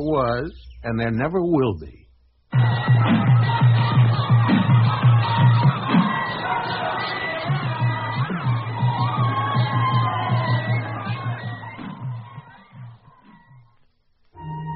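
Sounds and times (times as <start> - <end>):
speech: 0.0 - 5.6
rowdy crowd brawling with shouts, whoops and yells: 2.6 - 13.1.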